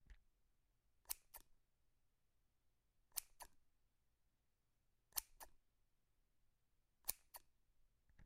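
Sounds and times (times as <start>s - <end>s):
scissors clicking open and shut: 1.0s - 1.5s, 3.1s - 3.6s, 5.1s - 5.6s, 7.0s - 7.6s.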